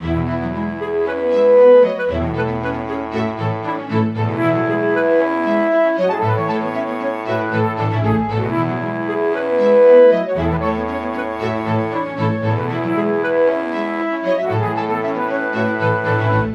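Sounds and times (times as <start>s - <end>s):
classical music: 0.0s - 16.5s.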